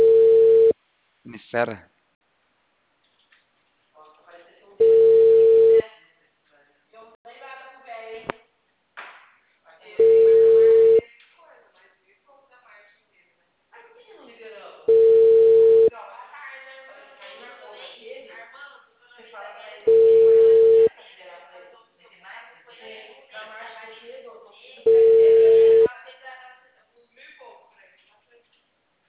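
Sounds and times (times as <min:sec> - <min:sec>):
telephone ringing tone on an unanswered call: 0:00.0 - 0:00.7, 0:04.8 - 0:05.8, 0:10.0 - 0:11.0, 0:14.9 - 0:15.9, 0:19.9 - 0:20.9, 0:24.9 - 0:25.9
speech: 0:01.5 - 0:01.9.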